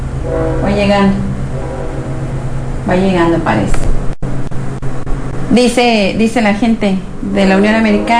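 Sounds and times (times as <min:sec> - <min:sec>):
train horn blast: 0:00.0 - 0:03.9, 0:07.6 - 0:08.1
train rumbling past: 0:00.0 - 0:08.1
speech: 0:00.2 - 0:01.4, 0:02.9 - 0:03.9, 0:05.5 - 0:08.1.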